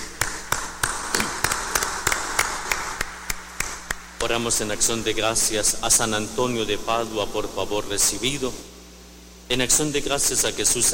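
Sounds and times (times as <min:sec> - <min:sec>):
applause: 0:00.2 - 0:04.0
speech: 0:04.2 - 0:08.7, 0:09.5 - 0:10.9.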